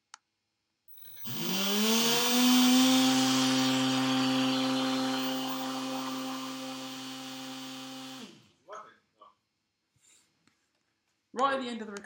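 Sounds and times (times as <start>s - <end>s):
multirotor running at 1500: 1.1s - 8.4s.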